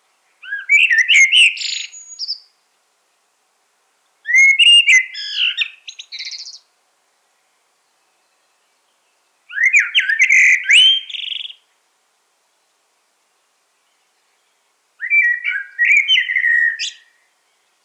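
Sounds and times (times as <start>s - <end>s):
common blackbird whistled song: 0.4s - 2.6s, 4.2s - 6.7s, 9.5s - 11.7s, 13.9s - 17.6s.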